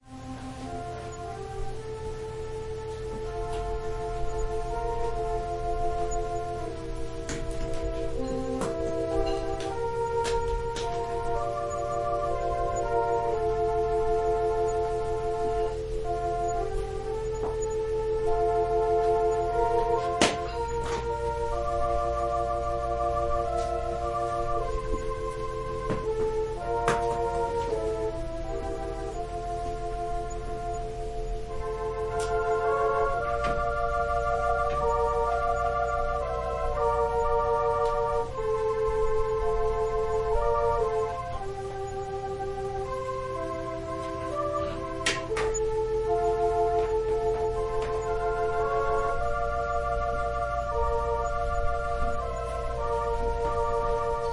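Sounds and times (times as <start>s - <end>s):
organ prelude: 0.0s - 54.3s.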